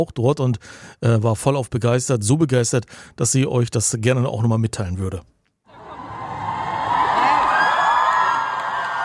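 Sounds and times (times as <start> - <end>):
speech: 0.0 - 5.4
concert crowd cheering: 5.7 - 9.0.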